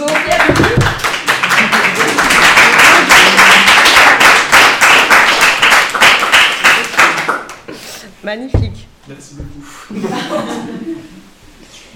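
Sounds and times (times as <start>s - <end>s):
audience applause: 0.0s - 7.6s
speech: 8.3s - 11.3s
laughter: 9.7s - 11.3s.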